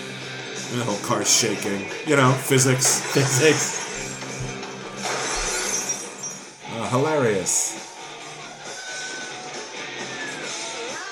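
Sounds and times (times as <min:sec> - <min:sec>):
speech: 0:00.7 - 0:03.8, 0:06.9 - 0:07.7
window glass shattering: 0:05.0 - 0:06.5.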